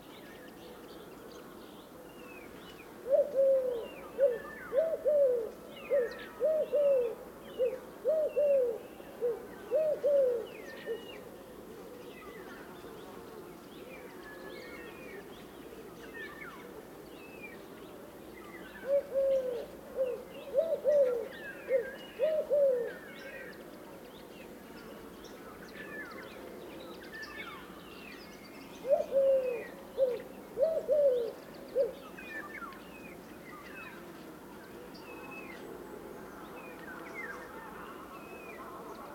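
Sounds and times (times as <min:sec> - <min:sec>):
Eurasian collared dove Streptopelia decaocto: 0:03.0 - 0:12.1, 0:18.8 - 0:23.5, 0:28.8 - 0:32.3.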